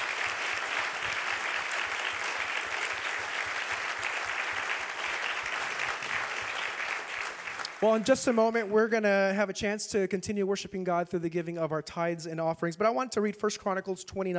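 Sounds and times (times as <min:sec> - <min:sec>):
audience applause: 0:00.0 - 0:08.6
speech: 0:07.8 - 0:14.3.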